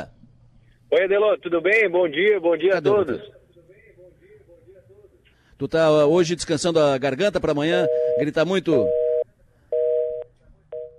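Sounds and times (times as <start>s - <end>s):
speech: 0.9s - 3.4s, 5.6s - 9.0s
telephone busy tone after a dropped call: 7.8s - 8.2s, 8.8s - 9.2s, 9.8s - 10.9s.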